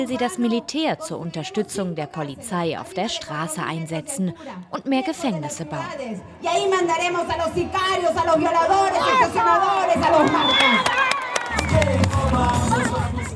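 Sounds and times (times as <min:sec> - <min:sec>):
speech: 0:00.0 - 0:11.1
crowd cheering at a Keiko Fujimori campaign rally in Peru: 0:08.2 - 0:13.3.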